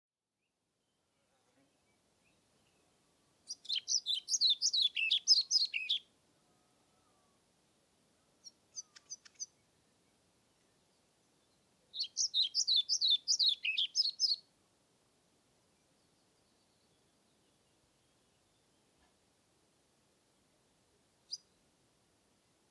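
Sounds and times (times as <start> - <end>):
European Pied Flycatcher singing: 3.4 - 6.1, 11.9 - 14.5.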